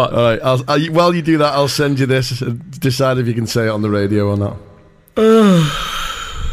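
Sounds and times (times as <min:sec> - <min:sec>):
speech: 0:00.0 - 0:06.0
yawn: 0:05.2 - 0:06.5.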